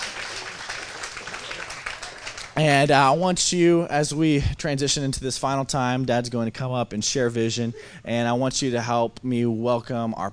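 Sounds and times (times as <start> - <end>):
audience applause: 0.0 - 2.6
speech: 2.6 - 10.3.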